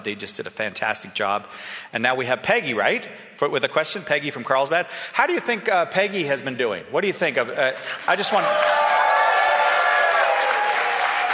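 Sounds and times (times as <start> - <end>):
speech: 0.0 - 8.9
audience applause at a live question-and-answer show: 7.8 - 11.3.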